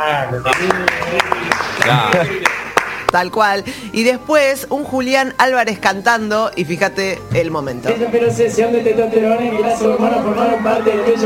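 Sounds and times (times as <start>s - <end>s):
speech: 0.0s - 2.5s, 3.1s - 11.2s
players clapping hands: 0.5s - 3.3s.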